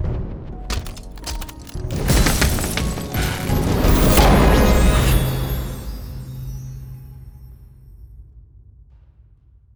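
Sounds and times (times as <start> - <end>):
success victory screen jingle: 0.7 - 7.7.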